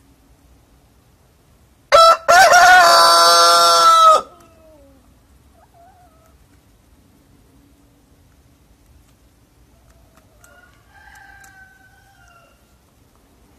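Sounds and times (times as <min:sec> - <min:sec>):
rooster crowing: 0:01.9 - 0:04.8, 0:10.3 - 0:12.8.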